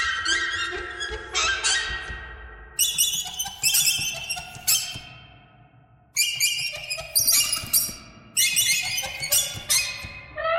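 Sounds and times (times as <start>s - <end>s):
birds: 0.0s - 5.4s, 6.2s - 10.4s.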